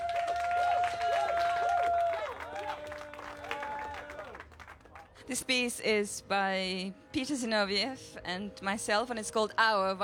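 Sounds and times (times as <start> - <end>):
audience applause: 0.0 - 5.1
speech: 5.3 - 10.0.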